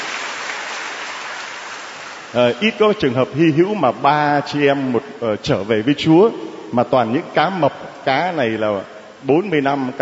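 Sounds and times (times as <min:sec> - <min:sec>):
crowd applause at a church gathering: 0:00.0 - 0:02.7
speech: 0:02.3 - 0:09.9.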